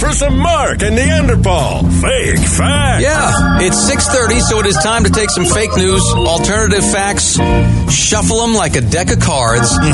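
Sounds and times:
speech: 0:00.2 - 0:09.9
radio segue sound effect: 0:02.9 - 0:07.2, 0:09.4 - 0:09.9.

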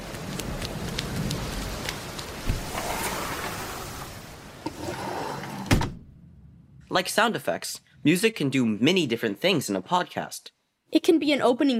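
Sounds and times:
heavier raindrops: 0:00.0 - 0:04.8
steady rain pouring in a rainstorm: 0:00.0 - 0:05.7
speech: 0:06.9 - 0:11.7.

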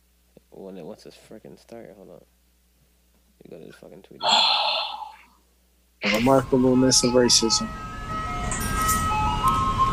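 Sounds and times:
speech: 0:00.6 - 0:02.4, 0:03.4 - 0:04.8, 0:06.1 - 0:08.0
ice cream truck jingle chiming melody: 0:06.3 - 0:09.9.

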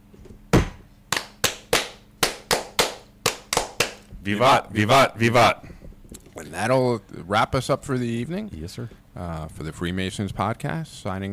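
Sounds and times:
Freemasons' rhythmic group clapping for the ritual fire toast: 0:01.1 - 0:04.1
speech: 0:04.2 - 0:05.7, 0:06.4 - 0:11.3.

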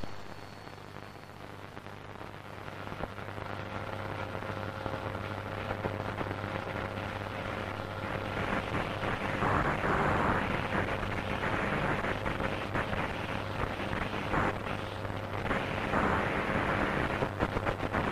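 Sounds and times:
radio interference low hum: 0:00.0 - 0:02.1
crackling static hiss: 0:00.0 - 0:18.1.

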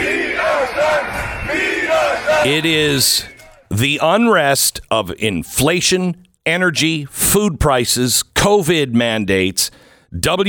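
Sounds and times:
protest crowd shouting and chanting in the street: 0:00.0 - 0:03.8
speech: 0:01.5 - 0:10.4.

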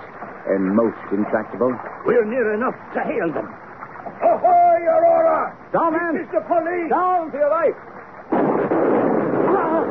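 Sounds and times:
speech: 0:00.5 - 0:07.9
continuous heavy roar: 0:02.4 - 0:09.9
gunshots: 0:08.3 - 0:09.9.

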